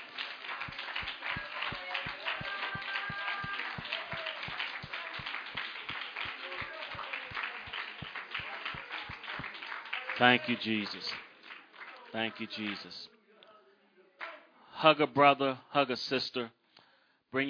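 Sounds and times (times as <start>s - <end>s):
audience clapping hands: 0.0s - 13.0s
speech: 10.2s - 11.2s, 12.1s - 13.2s, 14.8s - 16.6s.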